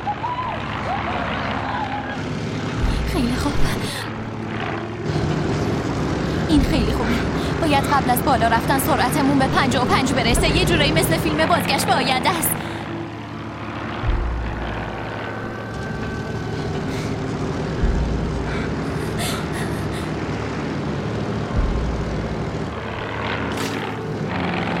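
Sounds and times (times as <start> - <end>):
aircraft engine droning in flight: 0.0 - 24.7
low thumps: 2.6 - 11.4, 12.4 - 20.6, 21.4 - 23.1
speech: 3.2 - 4.1, 6.7 - 12.6.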